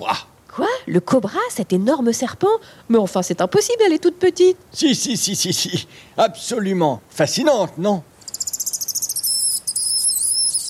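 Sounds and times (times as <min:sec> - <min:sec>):
speech: 0:00.0 - 0:00.3, 0:00.9 - 0:08.1
mongoose shrill call: 0:08.2 - 0:10.6.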